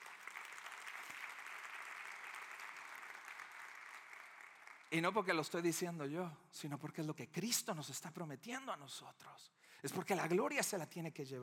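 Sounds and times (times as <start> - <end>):
audience applause: 0.0 - 5.0
speech: 4.9 - 11.4.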